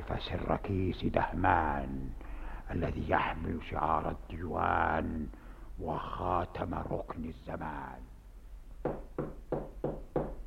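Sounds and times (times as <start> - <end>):
speech: 0.1 - 8.1
knocking on a wooden door: 8.8 - 10.4.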